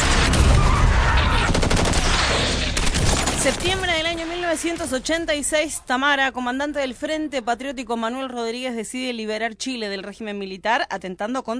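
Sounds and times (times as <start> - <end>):
gunfire barrage: 0.0 - 5.3
speech: 3.4 - 11.5.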